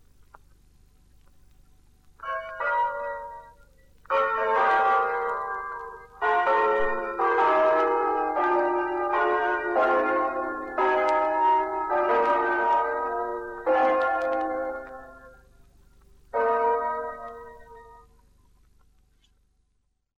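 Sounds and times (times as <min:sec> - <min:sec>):
bells ringing: 0:02.2 - 0:15.5, 0:16.3 - 0:18.2.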